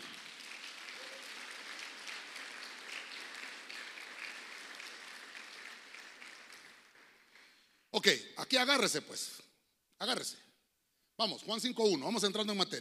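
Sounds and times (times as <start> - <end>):
audience clapping loudly: 0.0 - 7.8
speech: 8.0 - 9.4, 10.0 - 10.4, 11.2 - 12.8.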